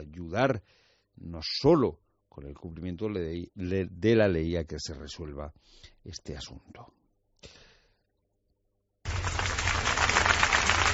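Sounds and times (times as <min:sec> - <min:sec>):
speech: 0:00.2 - 0:07.6
applause at a farewell: 0:09.1 - 0:10.9.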